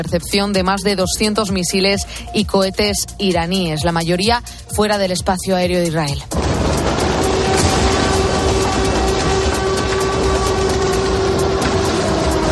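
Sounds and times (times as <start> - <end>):
speech: 0.0 - 6.6
air raid sirens: 6.3 - 12.4.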